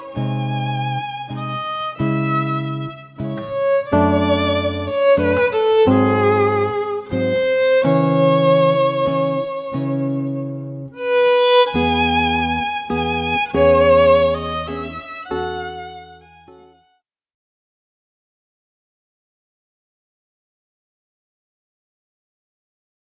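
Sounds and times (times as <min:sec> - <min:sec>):
guitar: 0:00.0 - 0:16.8
violin: 0:00.0 - 0:17.0.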